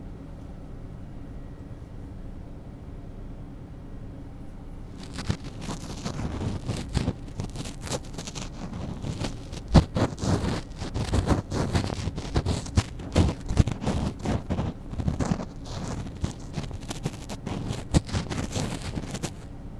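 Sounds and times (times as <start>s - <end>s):
ear cleaning with a cotton swab in the left ear: 5.0s - 19.5s.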